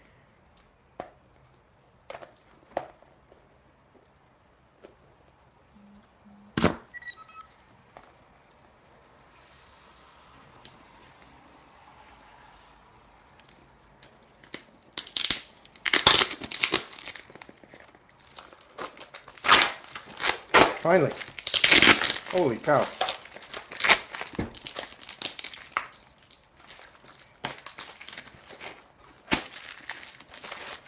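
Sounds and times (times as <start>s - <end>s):
packing tape peeled and ripped off a box: 14.0s - 30.8s
speech: 20.8s - 21.3s, 22.3s - 23.0s
person exclaiming: 22.3s - 22.9s.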